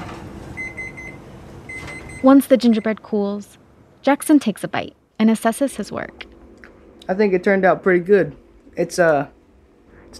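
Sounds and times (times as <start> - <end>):
oven timer beeping: 0.0 - 3.2
low hum: 0.0 - 10.1
speech: 2.2 - 6.3, 7.1 - 9.4.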